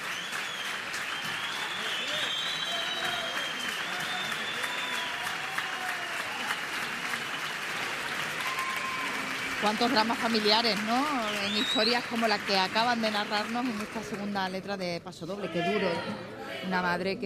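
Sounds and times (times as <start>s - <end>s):
audience whistles: 0.0s - 5.3s, 11.4s - 12.1s
theatre audience applause: 0.0s - 14.4s
speech: 9.6s - 17.2s.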